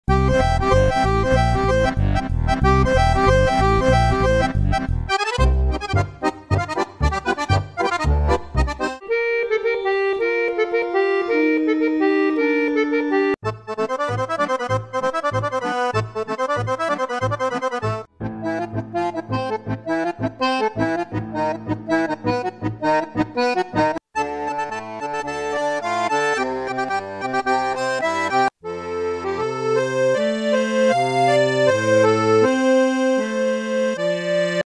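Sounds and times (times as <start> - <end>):
accordion: 0.1 - 34.6.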